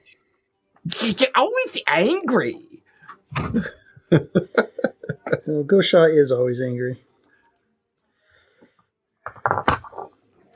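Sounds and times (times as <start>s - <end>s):
speech: 0.8s - 4.7s, 5.4s - 7.0s
laughter: 3.3s - 5.6s
metal dice rolling on a hard surface: 9.2s - 10.2s.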